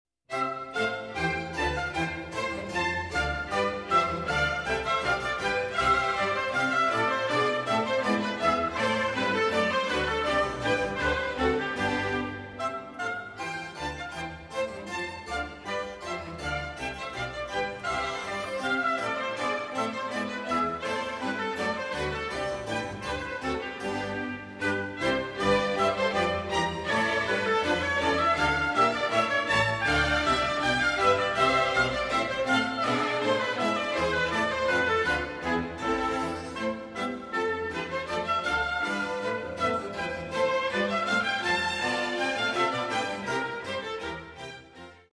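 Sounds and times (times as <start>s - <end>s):
orchestra playing a gavotte from an orchestral suite: 0.3s - 45.1s.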